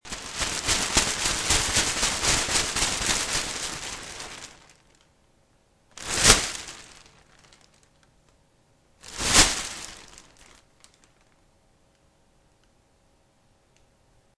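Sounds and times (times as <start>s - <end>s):
plastic bag: 0.0s - 5.0s, 6.0s - 8.0s, 9.0s - 11.4s.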